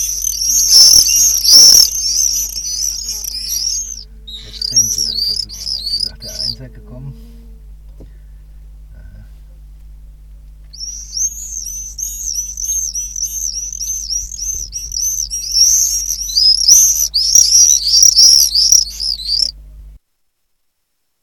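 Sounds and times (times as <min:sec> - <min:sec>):
common swift screaming calls: 0:00.0 - 0:06.6, 0:10.7 - 0:19.5
low hum: 0:00.0 - 0:20.0.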